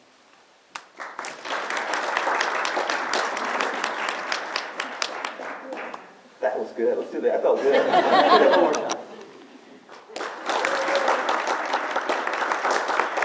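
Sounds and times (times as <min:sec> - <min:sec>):
crowd of people applauding: 0:00.8 - 0:06.2, 0:08.4 - 0:09.1, 0:09.9 - 0:13.2
speech: 0:06.7 - 0:08.9
laughter: 0:07.5 - 0:09.9.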